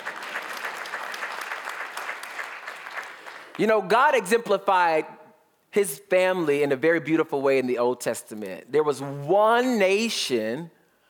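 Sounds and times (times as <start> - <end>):
crowd clapping: 0.0 - 4.0
speech: 3.6 - 5.2, 5.8 - 10.8.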